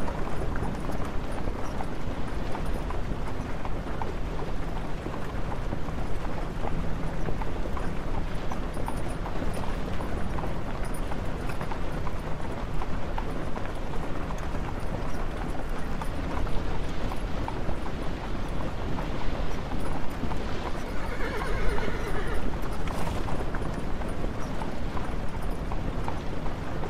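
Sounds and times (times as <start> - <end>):
horse hoofbeats clopping: 0.0 - 26.8.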